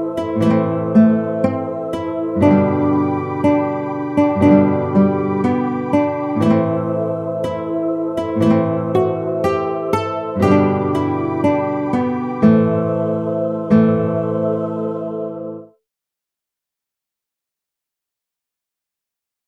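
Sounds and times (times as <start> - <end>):
guitar playing a sea shanty: 0.0 - 15.7.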